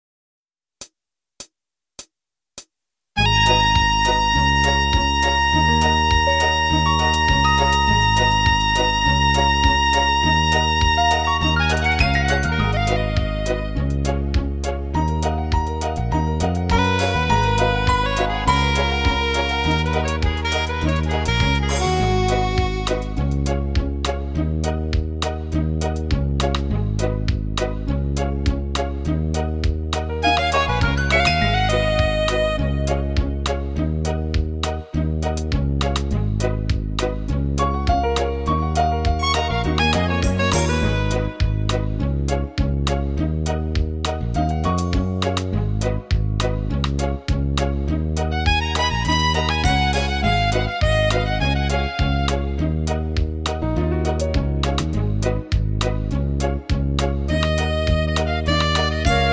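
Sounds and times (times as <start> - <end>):
brass music: 3.2 - 59.3.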